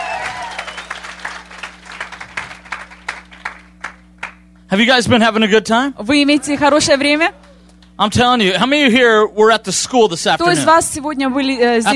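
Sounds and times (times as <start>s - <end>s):
audience clapping: 0.0s - 4.4s
speech: 4.7s - 7.4s, 8.0s - 11.9s.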